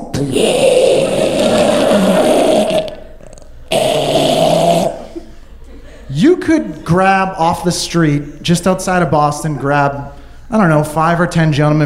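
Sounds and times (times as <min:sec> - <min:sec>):
speech: 0:00.2 - 0:00.8, 0:06.5 - 0:11.8
voice imitating a man's snore-like breathing as he falls asleep: 0:00.3 - 0:05.2.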